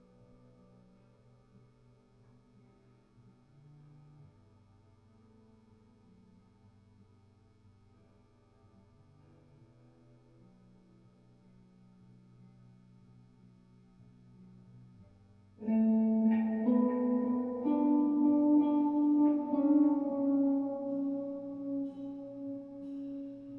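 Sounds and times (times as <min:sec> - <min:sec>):
guitar recorded with a Rode NT1A microphone in a room: 0:15.6 - 0:23.5.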